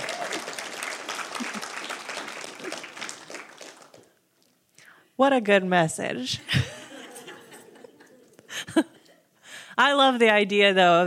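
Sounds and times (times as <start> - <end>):
audience round of applause: 0.0 - 4.1
laughter: 1.3 - 2.0, 6.5 - 9.1
speech: 5.2 - 6.7, 9.8 - 11.0.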